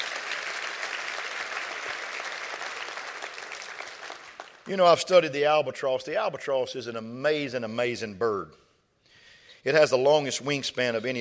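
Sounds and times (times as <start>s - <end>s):
people clapping hands: 0.0s - 5.0s
speech: 4.7s - 8.6s, 9.6s - 11.1s.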